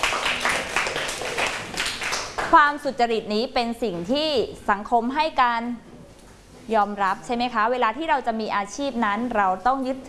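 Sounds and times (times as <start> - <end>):
students clapping for a group in a classroom: 0.0 - 2.6
speech: 2.5 - 5.9, 6.7 - 10.0.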